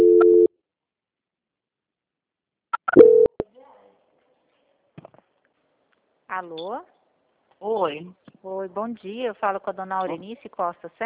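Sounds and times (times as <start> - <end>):
telephone line tone during a bank call transfer: 0.0 - 0.5
speech: 6.4 - 7.0, 7.6 - 11.0.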